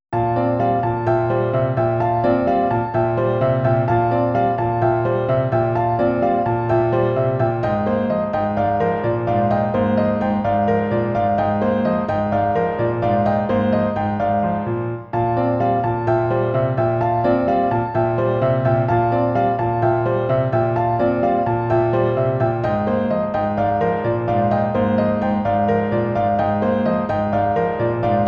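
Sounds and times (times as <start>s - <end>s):
piano: 0.0s - 28.2s.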